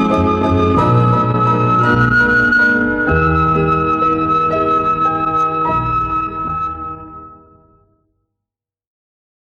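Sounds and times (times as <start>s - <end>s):
instrumental ensemble playing: 0.0s - 7.1s.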